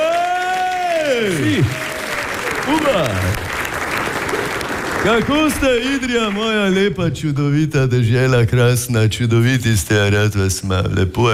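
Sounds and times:
whooping cheer: 0.0s - 3.3s
audience applause: 0.0s - 6.9s
speech: 1.1s - 1.9s, 2.7s - 3.4s, 5.0s - 11.3s.

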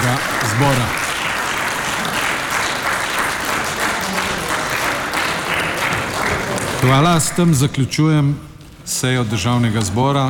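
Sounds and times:
loud applause in a parliament chamber: 0.0s - 7.7s
speech: 0.6s - 1.0s, 6.8s - 10.2s.

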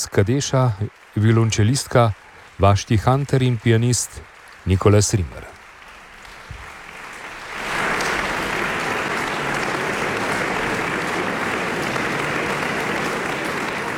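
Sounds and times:
speech: 0.0s - 5.5s
concert audience applauding in the full Union hall in Maribor: 0.0s - 13.9s.

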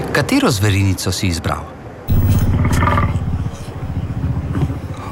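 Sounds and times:
speech: 0.2s - 1.8s
woolly mammoth call: 2.1s - 5.1s.

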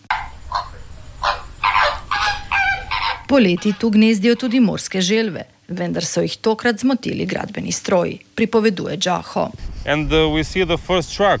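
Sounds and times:
flamingos calling at their nesting colony: 0.0s - 4.8s
speech: 3.3s - 11.3s.

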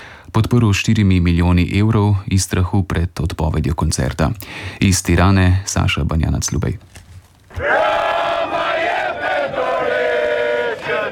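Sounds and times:
speech: 0.4s - 7.0s
protest crowd chanting outside government palace in Tirana: 7.5s - 11.1s.

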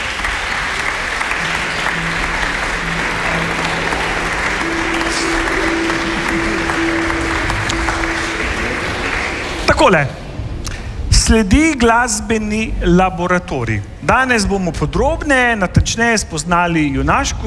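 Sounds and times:
audience applauding: 0.0s - 10.2s
speech: 9.9s - 10.2s, 11.3s - 17.4s.

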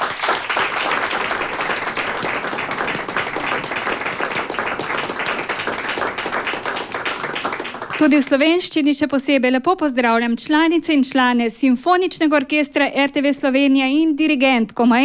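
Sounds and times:
audience applause for orchestra: 0.0s - 8.2s
speech: 8.0s - 15.0s.

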